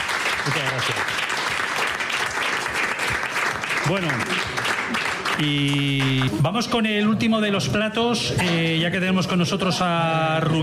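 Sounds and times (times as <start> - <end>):
applause: 0.0 - 6.4
speech: 0.4 - 1.4, 3.9 - 4.7, 5.4 - 10.6.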